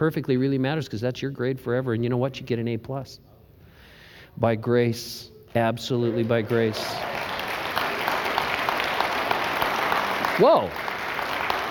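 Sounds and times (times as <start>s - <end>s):
speech: 0.0s - 3.4s, 4.4s - 7.3s, 10.4s - 10.9s
audience clapping: 5.8s - 11.6s.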